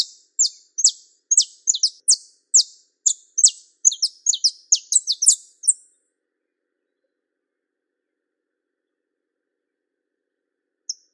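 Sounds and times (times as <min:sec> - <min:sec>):
Belgian canary singing: 0:00.0 - 0:05.9.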